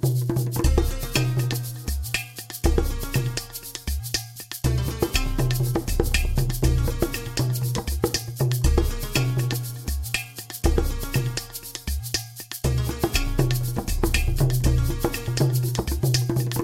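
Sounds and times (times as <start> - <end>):
tribal Eastern rhythm melody loop: 0.0 - 16.6.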